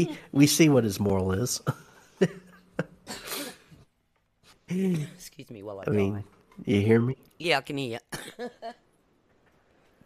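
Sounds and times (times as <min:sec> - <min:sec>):
speech: 0:00.0 - 0:02.4, 0:04.7 - 0:08.8
person coughing from choking on coffee: 0:03.0 - 0:03.8, 0:08.1 - 0:08.6.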